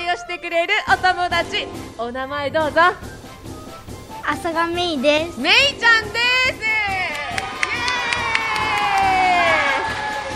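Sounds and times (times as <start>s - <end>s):
speech: 0.2s - 3.2s, 4.2s - 6.6s
sharp claps and whoops: 7.0s - 10.3s
schoolchildren cheering and shouting: 7.1s - 10.3s.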